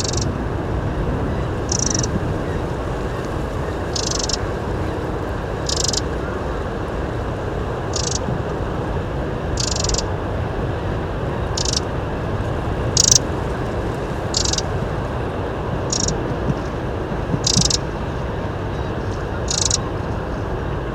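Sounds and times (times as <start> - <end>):
Eurasian wren dry rasping calls: 0.0 - 0.3, 1.7 - 2.2, 3.9 - 4.5, 5.6 - 6.1, 7.9 - 8.2, 9.6 - 10.1, 11.5 - 11.9, 13.0 - 13.2, 14.3 - 14.7, 15.9 - 16.2, 17.4 - 17.8, 19.4 - 19.8
constant deep background rumble: 0.0 - 20.9.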